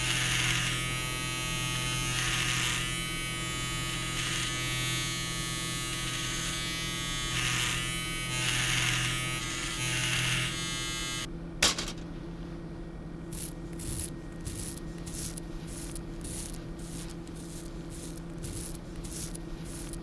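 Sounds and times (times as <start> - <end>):
electric shaver shaving hair from a man's head: 0.0 - 11.3, 13.3 - 20.0
handling noises: 11.6 - 12.3.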